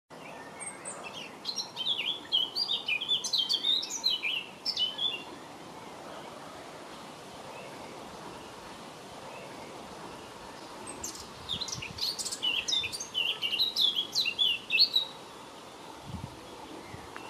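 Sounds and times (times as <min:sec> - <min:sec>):
blackcap singing: 0:00.3 - 0:05.3, 0:11.0 - 0:15.2.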